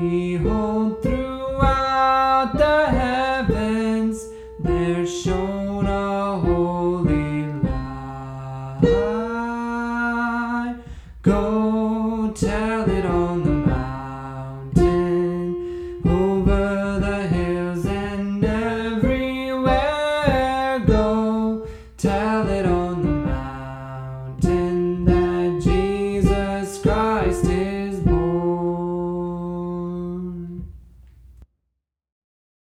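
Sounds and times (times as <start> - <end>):
soprano voice singing: 0.0 - 30.7.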